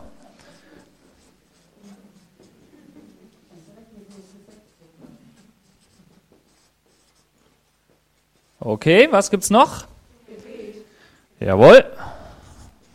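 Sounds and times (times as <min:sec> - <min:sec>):
pen strokes writing words by hand in a German brainstorming session: 0:00.6 - 0:08.6
speech: 0:08.6 - 0:09.9, 0:11.4 - 0:11.9.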